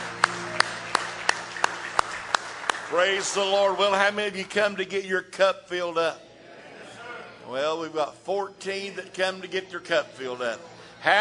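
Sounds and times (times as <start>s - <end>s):
congregation hand claps of praise at an evening church service: 0.0s - 4.0s
speech: 2.9s - 6.3s, 7.5s - 11.1s.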